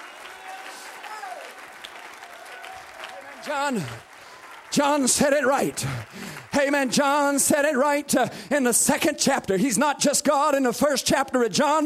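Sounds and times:
audience clapping: 0:00.0 - 0:08.6
speech: 0:03.4 - 0:04.1, 0:04.7 - 0:11.8.

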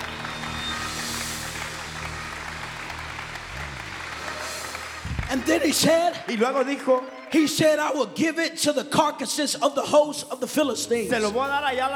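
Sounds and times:
audience clapping: 0:00.0 - 0:07.9
speech: 0:05.3 - 0:11.9.

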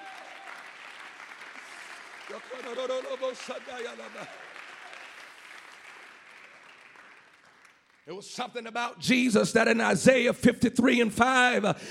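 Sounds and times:
audience applause: 0:00.0 - 0:08.2
speech: 0:02.3 - 0:04.5, 0:08.1 - 0:11.8.

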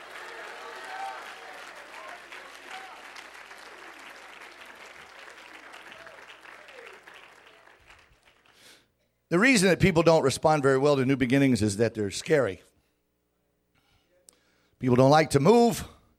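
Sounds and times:
crowd clapping: 0:00.0 - 0:08.8
speech: 0:09.3 - 0:12.7, 0:14.8 - 0:16.0.

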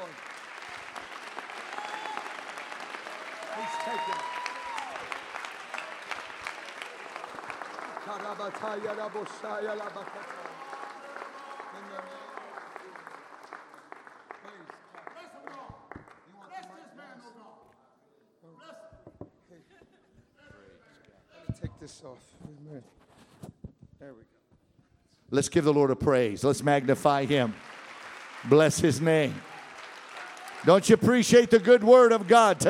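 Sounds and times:
audience clapping hands: 0:00.0 - 0:16.7, 0:25.6 - 0:32.6
speech: 0:08.3 - 0:10.5, 0:25.3 - 0:27.6, 0:28.4 - 0:29.5, 0:30.6 - 0:32.6.

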